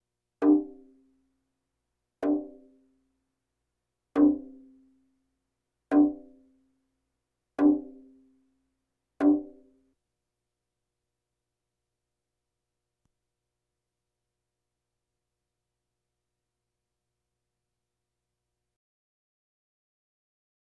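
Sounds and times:
bongos: 0.4s - 0.9s, 2.2s - 2.7s, 4.2s - 4.8s, 5.9s - 6.4s, 7.6s - 8.2s, 9.2s - 9.7s.

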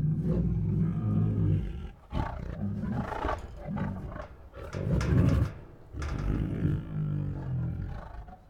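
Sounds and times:
tigers growling: 0.0s - 8.4s.

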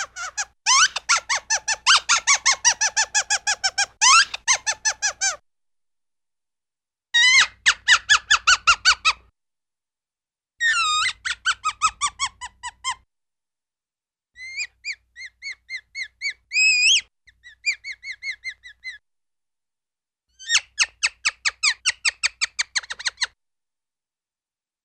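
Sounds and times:
cartoon mouse or small animal squeaks, chatter and laughs: 0.0s - 5.4s, 7.2s - 9.2s, 10.6s - 13.0s, 14.4s - 19.0s, 20.4s - 23.4s.

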